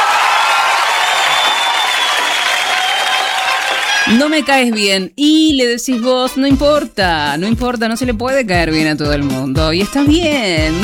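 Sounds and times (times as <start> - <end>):
applause ovation: 0.0 - 4.4
speech: 4.1 - 10.8.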